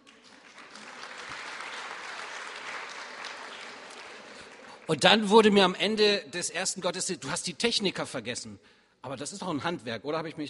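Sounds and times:
audience applause: 0:00.0 - 0:05.1
speech: 0:04.9 - 0:10.4.

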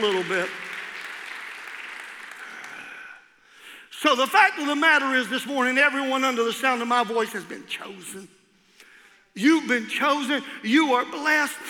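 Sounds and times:
speech: 0:00.0 - 0:00.7, 0:03.9 - 0:08.4, 0:09.4 - 0:11.6
audience clapping hands: 0:00.0 - 0:03.2.

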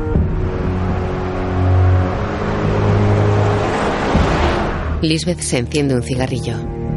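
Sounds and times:
car engine droning on a motorway at night: 0:00.0 - 0:05.0
speech: 0:05.0 - 0:06.8.

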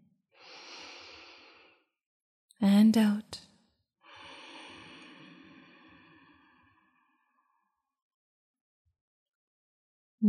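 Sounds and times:
slow breath drawn in during a guided meditation: 0:00.4 - 0:01.9, 0:04.0 - 0:07.9
speech: 0:02.6 - 0:03.4.

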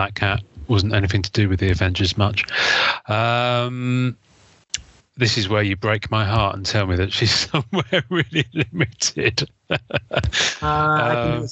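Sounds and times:
speech: 0:00.0 - 0:04.3, 0:05.2 - 0:11.5
laughter: 0:02.4 - 0:04.1, 0:07.1 - 0:11.5
person sneezing: 0:10.3 - 0:11.3.

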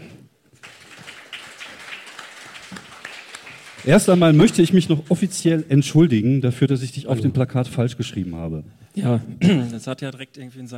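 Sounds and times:
audience applause: 0:00.5 - 0:05.8
speech: 0:03.8 - 0:10.7.

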